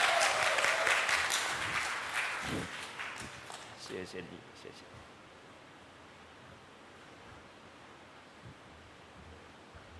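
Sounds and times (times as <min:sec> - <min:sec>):
audience applause: 0:00.0 - 0:03.8
speech: 0:04.0 - 0:05.2.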